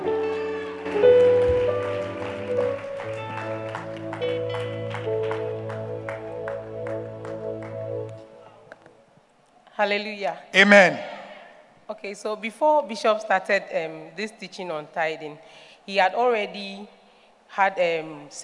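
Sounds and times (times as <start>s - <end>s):
audience clapping in welcome: 0.3s - 8.9s
speech: 9.8s - 11.1s, 12.0s - 18.4s.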